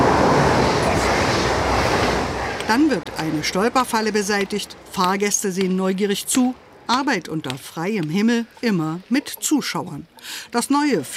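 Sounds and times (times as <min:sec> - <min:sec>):
ICE high-speed train speeding past a station: 0:00.0 - 0:04.3
speech: 0:02.7 - 0:11.1.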